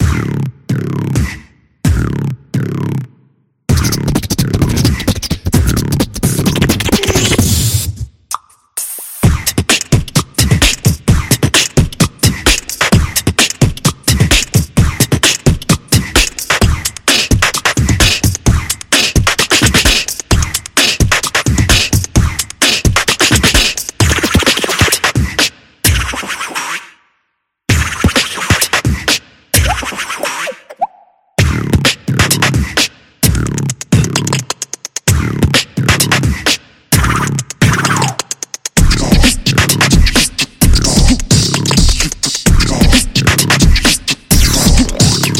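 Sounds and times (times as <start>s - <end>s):
person beatboxing: 0.0s - 3.0s, 3.7s - 26.9s, 27.7s - 45.3s.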